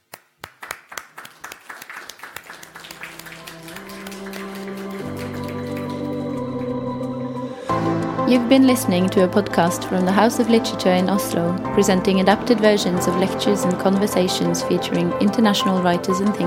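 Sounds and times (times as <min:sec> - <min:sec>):
hand clapping in gratitude: 0:00.0 - 0:06.8
sustained musical tone: 0:02.6 - 0:16.4
speech: 0:08.3 - 0:16.4.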